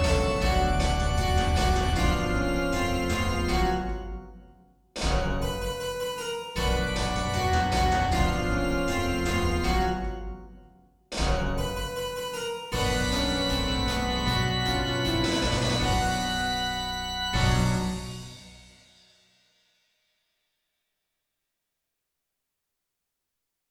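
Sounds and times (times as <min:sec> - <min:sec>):
music with full instrumentation: 0:00.0 - 0:04.4, 0:05.0 - 0:19.1.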